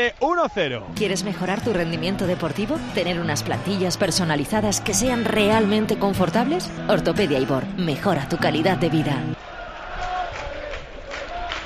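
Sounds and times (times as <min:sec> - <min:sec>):
speech: 0:00.0 - 0:09.5
football crowd at Fuenlabrada stadium: 0:07.9 - 0:11.6.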